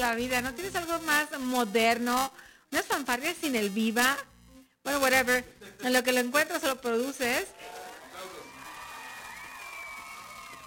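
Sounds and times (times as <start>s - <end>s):
speech: 0.0s - 7.8s
canned crowd cheering and applause: 7.5s - 10.6s
high whoops: 7.5s - 10.6s.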